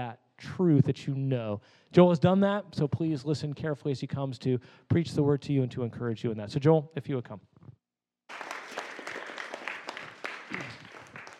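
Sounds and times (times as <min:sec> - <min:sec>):
speech: 0:00.0 - 0:07.5
crowd round of applause: 0:08.3 - 0:11.3.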